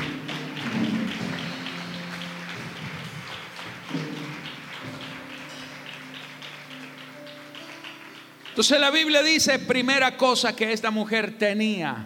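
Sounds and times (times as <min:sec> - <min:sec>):
audience applause: 0:00.0 - 0:09.2
speech: 0:08.6 - 0:12.0.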